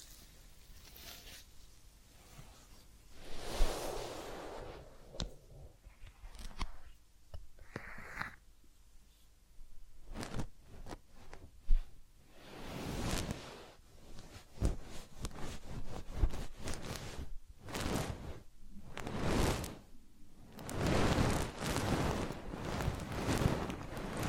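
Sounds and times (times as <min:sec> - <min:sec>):
soft rubbing and rustling massage strokes: 0:00.0 - 0:07.0, 0:09.0 - 0:24.2.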